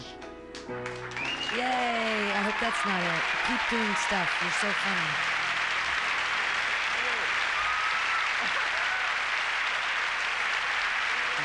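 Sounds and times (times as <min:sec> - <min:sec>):
studio audience applause: 0:00.5 - 0:11.4
speech: 0:00.7 - 0:01.0, 0:01.6 - 0:05.4.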